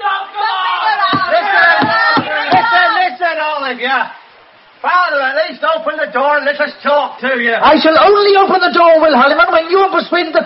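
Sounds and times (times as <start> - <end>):
angry crowd clamoring outside a door: 0.0 - 3.2
speech: 3.7 - 4.2, 4.8 - 10.4.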